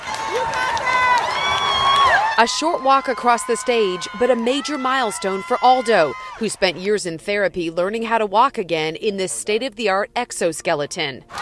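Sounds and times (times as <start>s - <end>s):
crowd of classmates cheering: 0.0s - 6.9s
speech: 2.4s - 11.3s.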